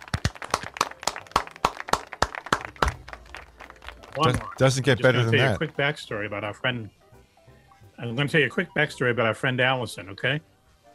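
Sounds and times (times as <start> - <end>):
hosts clapping: 0.0 - 5.8
speech: 4.2 - 7.0, 8.0 - 10.5.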